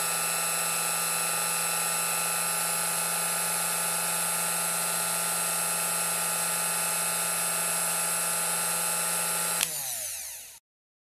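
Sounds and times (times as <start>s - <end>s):
electric hand mixer running on level 2: 0.0s - 10.6s.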